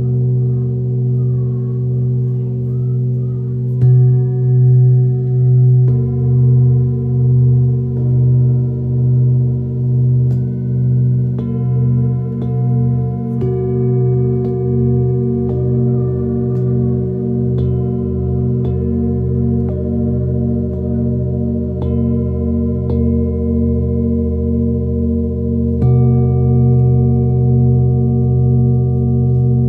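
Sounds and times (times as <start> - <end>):
singing bowls struck and ringing: 0.0 - 29.6.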